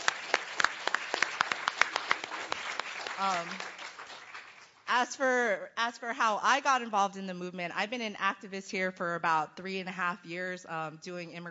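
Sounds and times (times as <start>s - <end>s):
audience applause: 0.0s - 4.7s
speech: 3.2s - 3.8s, 4.9s - 11.4s.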